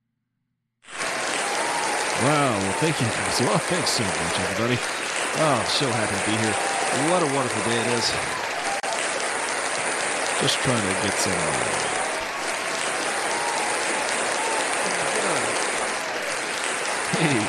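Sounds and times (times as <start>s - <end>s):
crowd applause: 0.9s - 17.4s
laughter: 2.2s - 8.2s, 14.4s - 16.4s, 17.0s - 17.4s
speech: 2.2s - 8.4s, 10.4s - 12.1s.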